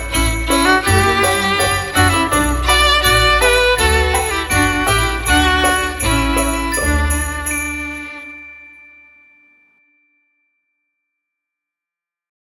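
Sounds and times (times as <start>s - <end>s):
christmas carol: 0.0s - 9.4s.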